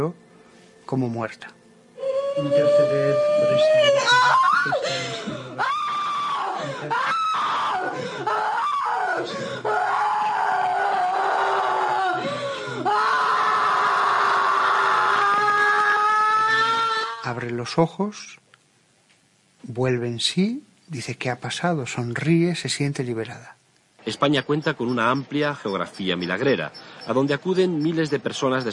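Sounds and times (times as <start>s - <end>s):
speech: 0.0s - 0.2s, 0.9s - 1.6s, 2.4s - 5.7s, 6.6s - 7.2s, 9.2s - 9.9s, 17.4s - 18.4s, 19.7s - 28.7s
person's tremendous sustained scream at the end of a possession: 2.0s - 17.2s.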